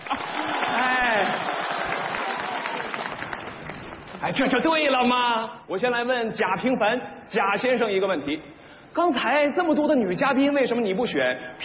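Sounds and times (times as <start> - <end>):
audience applause: 0.0 - 4.2
speech: 4.2 - 11.6.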